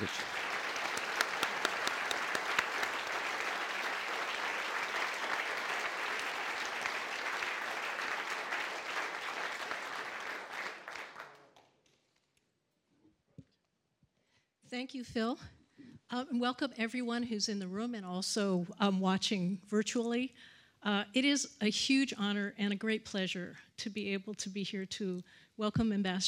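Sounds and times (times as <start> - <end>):
event audience clapping welcoming Ambassador Marie Yovanovitch: 0.0 - 11.9
speech: 14.8 - 26.2.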